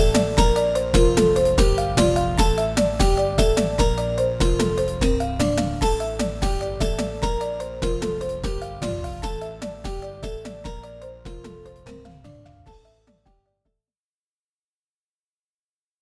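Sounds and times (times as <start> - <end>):
music on a Roland SC-88 sound module: 0.0 - 12.7.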